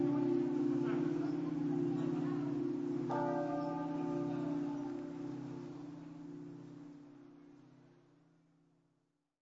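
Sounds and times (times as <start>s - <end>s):
bells ringing: 0.0s - 7.2s.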